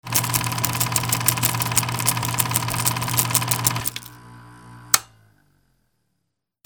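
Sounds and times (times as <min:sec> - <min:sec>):
camera sounds: 0:00.0 - 0:04.1.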